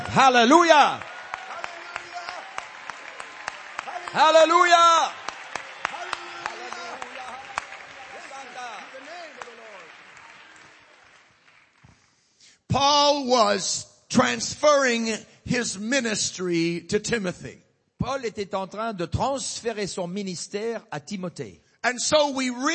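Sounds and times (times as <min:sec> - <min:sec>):
audience clapping hands: 0:00.0 - 0:12.4
speech: 0:00.2 - 0:01.1, 0:04.1 - 0:05.2, 0:12.7 - 0:22.7.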